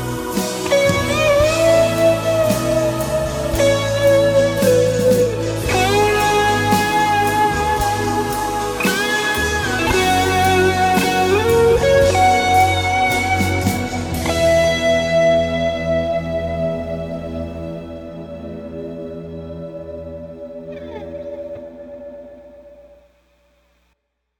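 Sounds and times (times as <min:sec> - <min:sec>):
solo through Twin Reverb amp with Rat distortion: 0:00.0 - 0:23.9.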